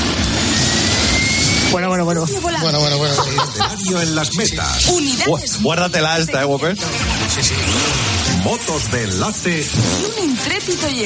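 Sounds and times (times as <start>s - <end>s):
helicopter flying over the 1993 Vuelta a España cycling race: 0.0s - 11.0s
speech: 1.7s - 11.0s
laughter: 2.3s - 4.7s.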